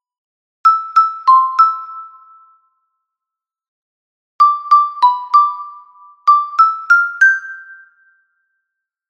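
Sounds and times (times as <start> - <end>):
soprano xylophone: 0.7 - 2.6, 4.4 - 8.3.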